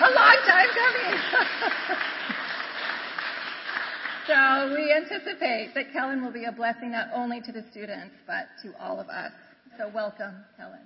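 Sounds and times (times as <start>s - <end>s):
laughter: 0.0s - 2.8s
audience clapping: 0.0s - 4.9s
speech: 4.6s - 10.8s.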